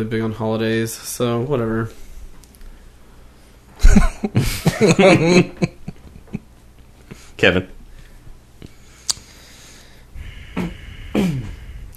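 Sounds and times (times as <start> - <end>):
speech: 0.0 - 2.0, 3.8 - 5.8, 7.4 - 7.8
laughter: 3.8 - 6.5
deep breath into a microphone: 7.1 - 11.9.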